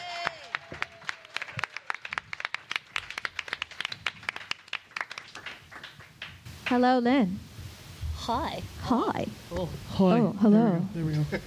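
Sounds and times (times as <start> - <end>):
small group clapping for a guest: 0.0 - 6.9
speech: 6.7 - 7.5, 8.2 - 11.4.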